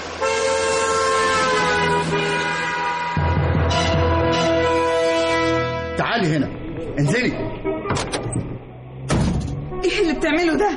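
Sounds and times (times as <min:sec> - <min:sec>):
deep engine rumble of speeding vehicles: 0:00.0 - 0:10.7
long sustained car horn blaring in traffic: 0:00.2 - 0:06.3, 0:07.1 - 0:08.1, 0:09.5 - 0:10.3
speech: 0:06.2 - 0:07.7, 0:10.2 - 0:10.7.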